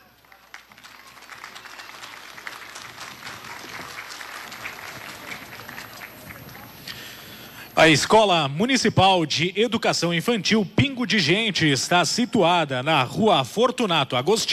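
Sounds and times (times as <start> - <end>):
audience applause: 0.0 - 7.1
speech: 7.8 - 14.5.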